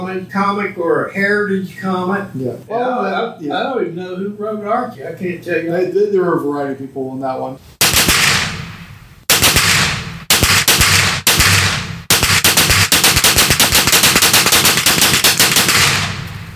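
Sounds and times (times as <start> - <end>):
speech: 0.2 - 7.8
pistol and rifle gunshots: 7.8 - 16.5.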